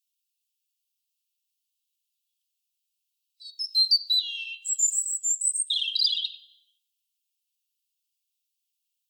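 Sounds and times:
European robin singing: 3.4s - 6.7s.

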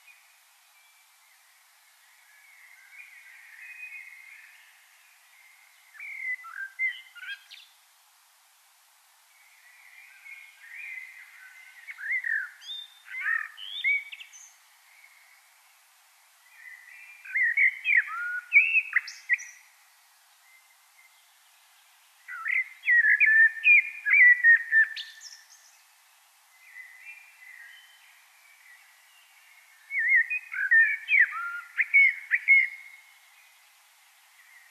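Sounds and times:
common blackbird singing: 5.9s - 7.7s, 9.8s - 15.3s, 16.6s - 19.7s, 22.3s - 25.8s, 26.6s - 33.3s.

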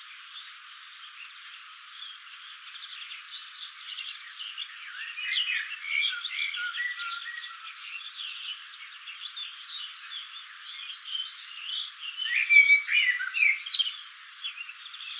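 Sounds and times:
Eurasian blackbird Turdus merula calling: 4.0s - 8.5s, 9.2s - 15.1s.

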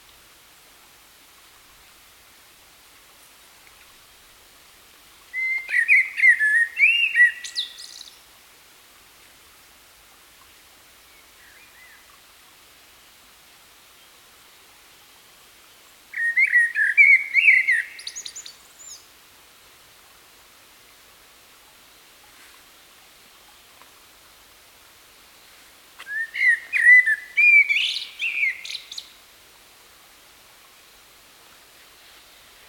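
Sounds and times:
common blackbird singing: 5.4s - 8.1s, 16.2s - 19.0s, 26.0s - 29.1s.

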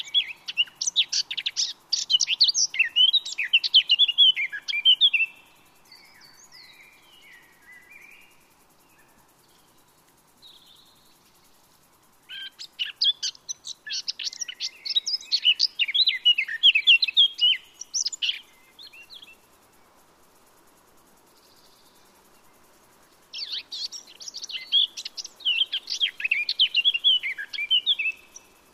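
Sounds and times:
Eurasian blackcap Sylvia atricapilla chattering and warbled song: 0.0s - 8.3s, 12.3s - 19.4s, 23.3s - 28.7s.

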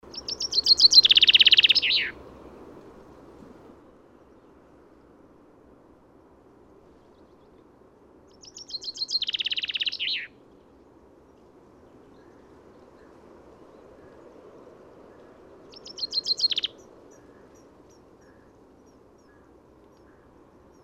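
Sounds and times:
Fringilla coelebs: 0.1s - 2.2s, 8.4s - 10.3s, 15.7s - 17.4s.

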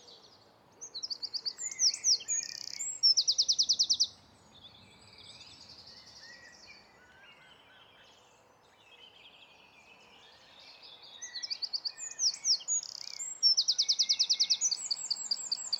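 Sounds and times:
Eurasian wren singing with a rattling trill: 0.9s - 4.1s, 11.3s - 15.7s.

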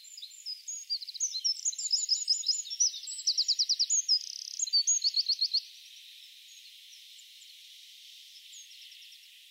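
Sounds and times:
Eurasian wren song: 0.0s - 9.4s.

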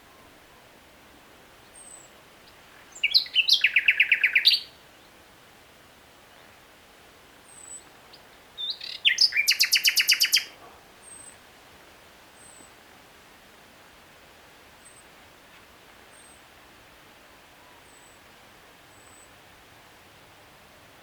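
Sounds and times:
common nightingale Luscinia megarhynchos singing: 1.6s - 4.8s, 7.5s - 11.4s.

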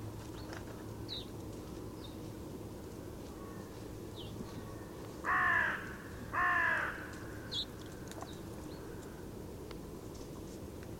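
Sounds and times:
Carrion crow Corvus corone giving short harsh caws: 5.2s - 7.5s.

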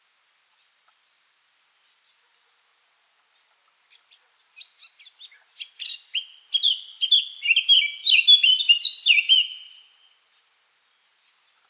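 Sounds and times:
Eurasian blackcap singing: 4.6s - 9.9s.

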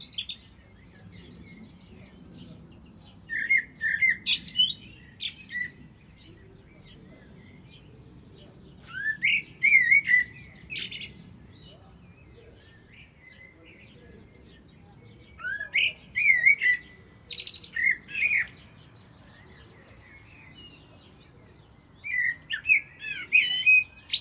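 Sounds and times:
common blackbird singing: 0.0s - 24.1s.

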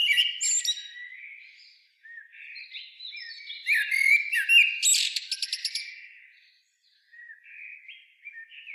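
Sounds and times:
common blackbird Turdus merula singing: 0.0s - 8.7s.

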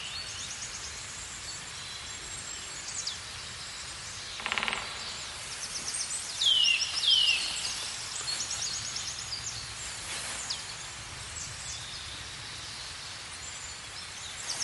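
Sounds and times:
Eurasian nuthatch, Sitta europaea, calling with downslurred whistled notes: 4.4s - 9.0s.

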